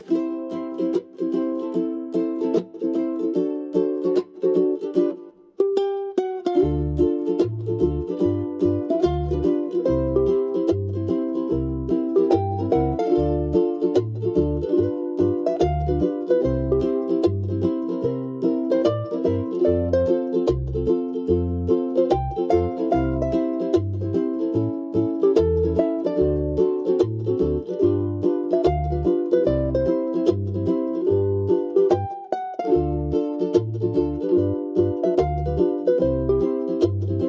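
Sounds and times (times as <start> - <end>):
Hawaiian music: 0.0 - 37.2.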